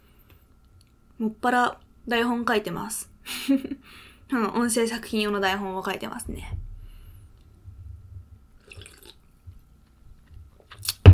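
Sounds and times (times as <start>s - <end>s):
speech: 1.2s - 6.7s
sipping a carbonated alcoholic drink: 8.6s - 9.4s.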